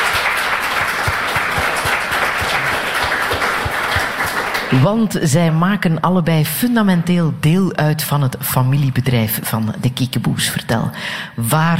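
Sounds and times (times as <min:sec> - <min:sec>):
audience applause: 0:00.0 - 0:04.9
speech: 0:04.7 - 0:11.7.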